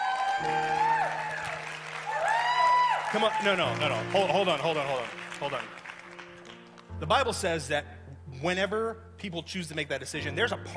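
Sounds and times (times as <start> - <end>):
crowd whooping: 0.0 - 3.9
crowd clapping: 0.0 - 7.0
speech: 3.1 - 5.8, 7.0 - 10.7.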